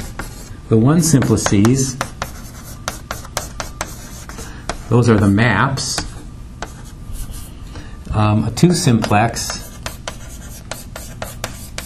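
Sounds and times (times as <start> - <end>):
chalk or marker strokes drawing a triangle on a board: 0.0 - 0.5, 1.2 - 5.4, 9.0 - 11.8
low steady background: 0.0 - 11.8
speech: 0.7 - 2.1, 4.9 - 6.0, 8.2 - 9.6.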